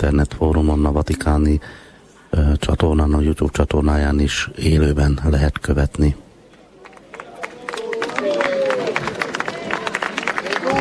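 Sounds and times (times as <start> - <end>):
speech: 0.0 - 6.2
applause: 6.8 - 10.8.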